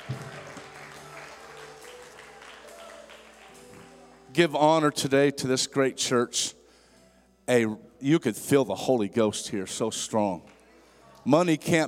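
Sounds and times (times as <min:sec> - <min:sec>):
audience clapping hands: 0:00.0 - 0:04.4
speech: 0:04.4 - 0:06.6, 0:07.5 - 0:10.6, 0:11.2 - 0:11.8.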